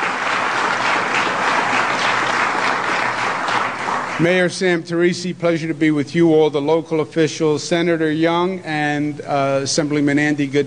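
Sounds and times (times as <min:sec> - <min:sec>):
audience applause: 0:00.0 - 0:04.5
speech: 0:04.2 - 0:10.6.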